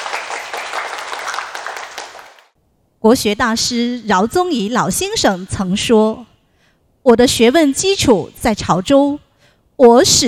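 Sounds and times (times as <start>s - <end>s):
crowd applauding: 0.0s - 2.6s
speech: 3.0s - 6.3s, 7.0s - 9.2s, 9.8s - 10.2s.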